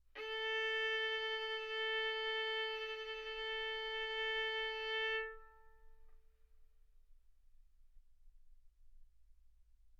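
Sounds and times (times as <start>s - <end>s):
violin arco on A string: 0.1s - 6.0s.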